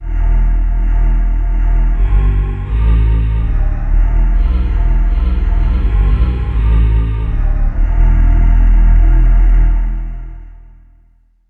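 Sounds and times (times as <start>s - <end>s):
synth voice bass: 0.0s - 10.8s.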